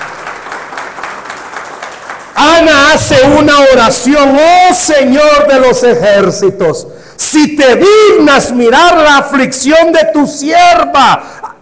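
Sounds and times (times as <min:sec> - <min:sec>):
congregation applauding during a church service: 0:00.0 - 0:03.7
speech: 0:02.5 - 0:11.4.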